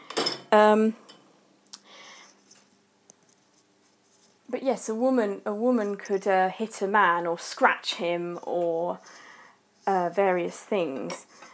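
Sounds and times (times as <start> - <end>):
dishes and cutlery loading into dishwasher: 0.0 - 0.5
speech: 0.5 - 1.1, 4.6 - 9.2, 9.8 - 11.5.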